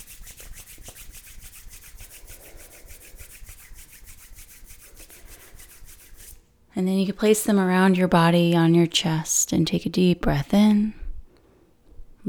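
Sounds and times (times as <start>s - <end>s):
hands rubbing together: 0.0s - 6.5s
speech: 6.8s - 11.0s.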